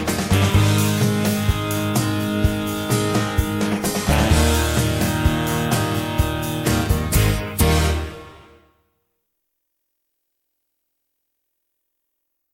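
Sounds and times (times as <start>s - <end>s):
instrumental music: 0.0s - 8.9s.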